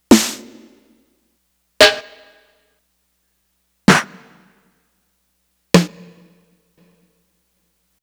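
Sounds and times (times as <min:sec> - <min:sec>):
snare drum hits: 0:00.1 - 0:01.0, 0:03.9 - 0:04.5, 0:05.8 - 0:06.9.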